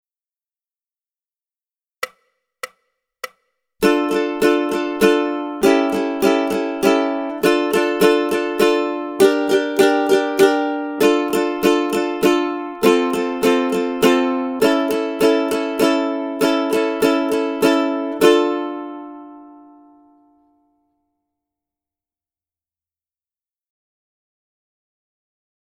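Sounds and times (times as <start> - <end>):
ukulele rhythm study: 2.0 - 20.7.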